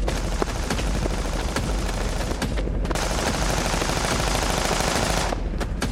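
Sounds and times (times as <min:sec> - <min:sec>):
gunfire: 0:00.1 - 0:05.9.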